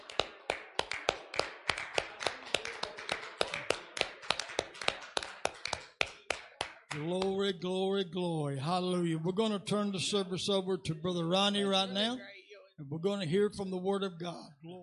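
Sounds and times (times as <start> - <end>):
group clapping hands: 0.0 - 7.6
speech: 7.0 - 14.8.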